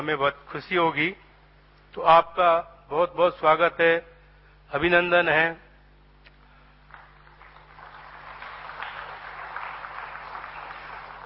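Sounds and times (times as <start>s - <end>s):
speech: 0.0s - 1.3s, 1.9s - 4.1s, 4.7s - 5.6s
audience clapping: 6.8s - 11.2s.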